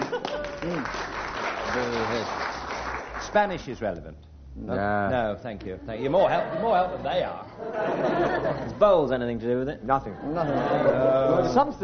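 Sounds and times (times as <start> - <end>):
laughter: 0.0 - 0.9, 6.1 - 9.0, 10.0 - 11.7
audience applause: 0.0 - 3.5
speech: 3.3 - 11.8.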